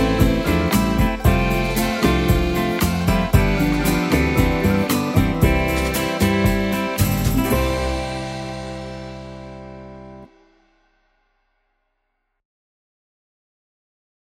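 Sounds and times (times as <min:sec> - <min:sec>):
60s Italian beguine music: 0:00.0 - 0:10.3.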